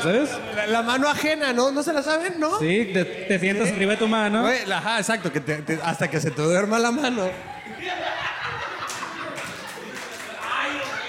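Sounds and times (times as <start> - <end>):
speech: 0.0 - 8.2
scattered laughter: 7.2 - 10.4
audience applause: 8.7 - 11.0.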